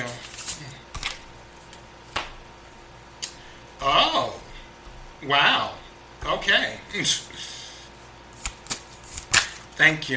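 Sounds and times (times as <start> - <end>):
tarot cards being shuffled: 0.1 - 2.3, 8.3 - 9.8
speech: 5.3 - 7.5, 9.8 - 10.1
tarot card snaps: 8.4 - 9.7.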